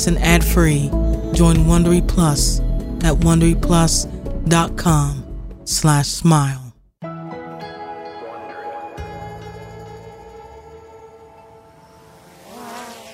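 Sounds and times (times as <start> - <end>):
speech: 0.0 - 6.6
small drone flying over a sunny Brooklyn street: 10.8 - 13.1.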